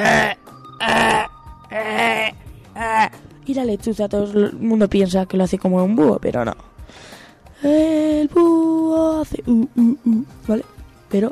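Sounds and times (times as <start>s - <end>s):
person imitating a rook caw: 0.0s - 3.2s
speech: 3.5s - 11.3s.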